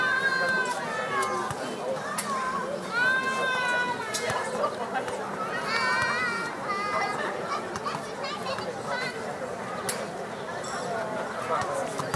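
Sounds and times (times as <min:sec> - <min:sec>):
children shouting: 0:00.0 - 0:04.5, 0:05.4 - 0:09.2
children chattering and calling on a summer evening: 0:00.0 - 0:12.1.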